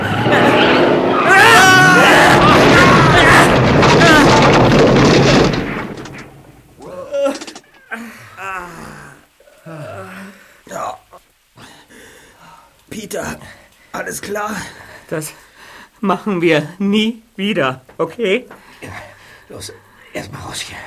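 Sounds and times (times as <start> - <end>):
tire screeches: 0.0 - 6.2
landslide rumbling roar: 0.0 - 10.2
speech: 14.4 - 15.4, 16.0 - 20.8.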